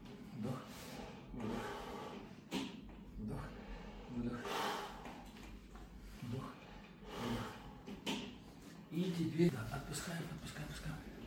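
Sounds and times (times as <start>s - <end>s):
person breathing in and out during a guided breathing exercise: 0.5s - 2.5s, 3.5s - 5.6s, 6.2s - 8.1s
speech: 9.3s - 11.2s.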